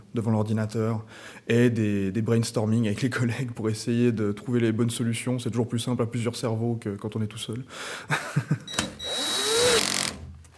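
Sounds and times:
speech: 0.2 - 8.9
laughter: 8.1 - 8.7
power screwdriver driving screws through aluminium fairings onto an electric cargo bike: 8.7 - 10.3.

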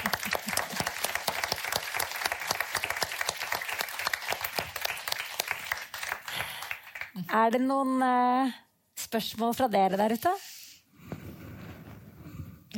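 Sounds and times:
applause from the audience: 0.0 - 7.4
speech: 7.3 - 10.5.

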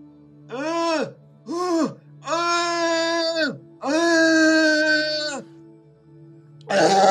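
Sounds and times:
adult imitating a baby crying: 0.5 - 5.4, 6.7 - 7.1.

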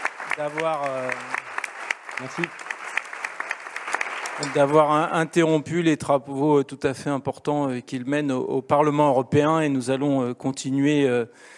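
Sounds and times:
audience applause: 0.0 - 5.3
speech: 0.4 - 1.4, 2.2 - 2.7, 4.4 - 11.5.

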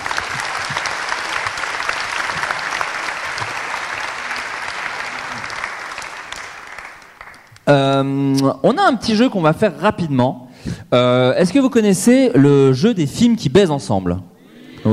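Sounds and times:
audience applause: 0.0 - 7.6
speech: 7.7 - 14.9.

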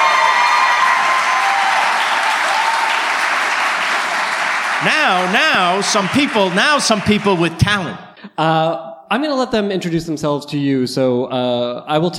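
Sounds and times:
audience applause: 0.0 - 7.9
speech: 4.8 - 12.1.

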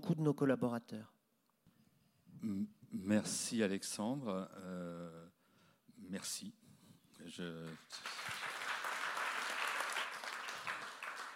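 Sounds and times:
speech: 0.0 - 1.1, 2.4 - 5.4, 6.0 - 6.6, 7.2 - 8.2
audience applause: 7.7 - 11.3.

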